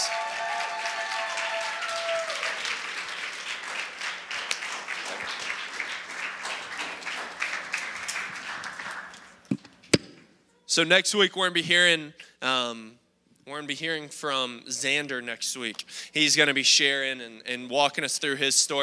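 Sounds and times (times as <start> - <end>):
audience applauding: 0.0 - 9.4
speech: 10.8 - 18.8.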